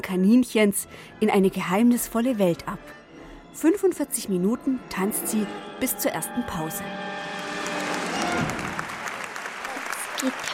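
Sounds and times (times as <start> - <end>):
speech: 0.0 - 3.0, 3.6 - 7.2, 10.2 - 10.5
theatre audience applauding: 7.1 - 10.5.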